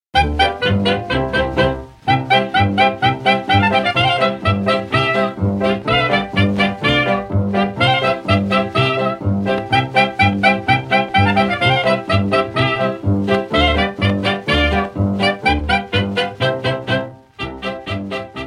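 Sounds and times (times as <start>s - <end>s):
polka music: 0.1s - 18.4s.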